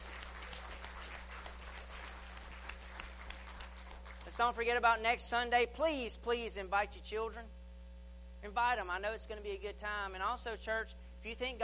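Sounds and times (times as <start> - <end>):
audience applause: 0.0 - 4.3
speech: 4.3 - 7.6, 8.4 - 11.6.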